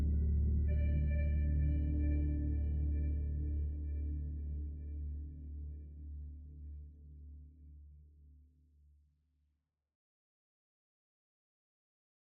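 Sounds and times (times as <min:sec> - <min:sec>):
ambient music: 0:00.0 - 0:06.4.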